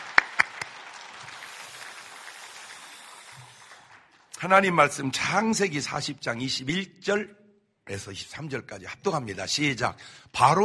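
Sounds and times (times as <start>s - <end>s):
audience applause: 0.0s - 4.4s
speech: 4.4s - 10.6s.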